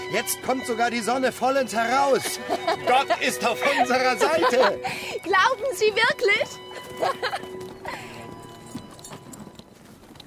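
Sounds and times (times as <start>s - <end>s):
horse hooves clip-clopping: 0.0s - 10.2s
speech: 0.1s - 7.6s
laughter: 1.8s - 5.2s, 6.7s - 8.1s.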